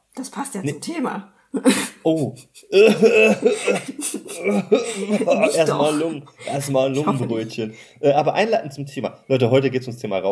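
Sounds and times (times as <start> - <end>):
speech: 0.2 - 10.3
laughter: 1.6 - 7.7
throat clearing: 2.2 - 6.2.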